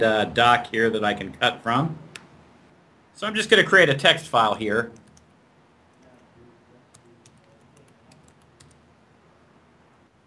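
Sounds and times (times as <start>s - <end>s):
speech: 0.0s - 2.1s, 3.2s - 5.0s
computer keyboard typing text into a new file: 4.9s - 5.3s, 6.9s - 8.9s.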